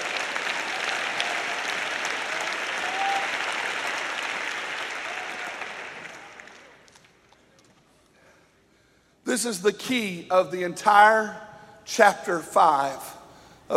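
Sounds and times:
audience clapping: 0.0 - 7.9
speech: 9.3 - 13.7.

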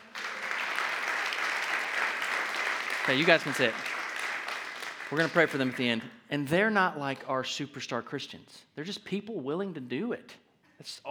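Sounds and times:
audience clapping: 0.0 - 6.1
speech: 3.1 - 3.9, 5.1 - 11.0.

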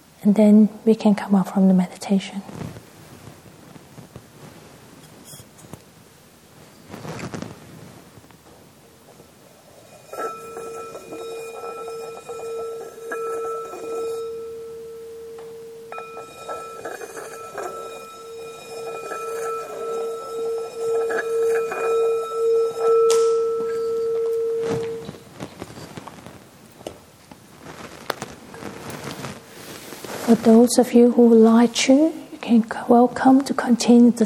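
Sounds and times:
soft hiss: 0.0 - 34.2
speech: 0.2 - 2.8, 30.5 - 34.2
meditation bell ringing: 9.6 - 25.3.

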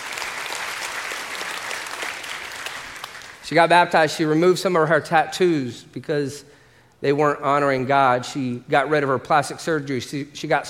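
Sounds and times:
crowd applauding: 0.0 - 3.4
speech: 3.5 - 10.6.

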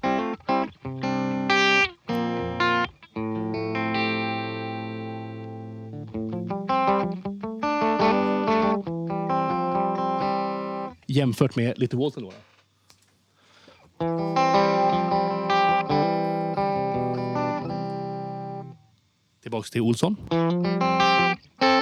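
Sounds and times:
looped clean electric guitar phrase through an effects unit: 0.0 - 11.0, 14.0 - 18.8, 20.2 - 21.7
speech: 11.2 - 12.5, 19.5 - 20.8.

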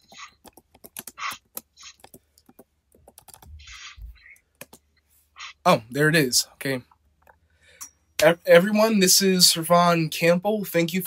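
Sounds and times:
typing on a computer keyboard: 0.0 - 3.6
speech: 5.6 - 6.9, 8.2 - 11.0.

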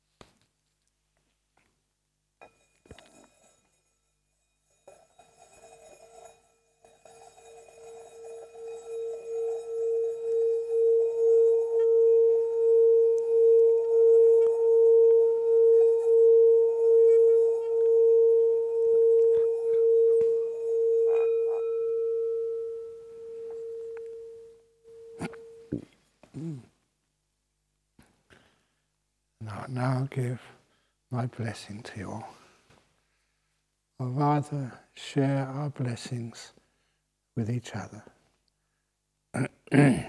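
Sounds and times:
gong ringing and chiming: 8.3 - 25.7
speech: 30.1 - 30.5, 31.2 - 32.4, 34.2 - 36.6, 37.4 - 38.1, 39.4 - 40.0.

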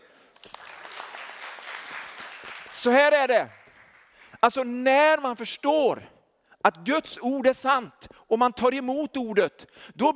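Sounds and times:
audience applause greeting a guest's entrance: 0.3 - 4.3
speech: 2.8 - 3.6, 4.4 - 10.1.

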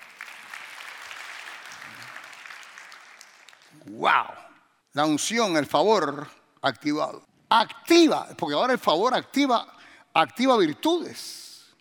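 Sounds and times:
audience applause: 0.0 - 3.8
speech: 3.8 - 4.4, 5.0 - 11.5.

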